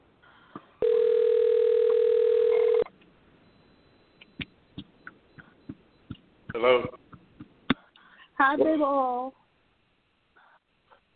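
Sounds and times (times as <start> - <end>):
phone ringback tone: 0.8 - 4.2
faint clicks and taps: 4.2 - 8.1
speech: 8.5 - 9.4.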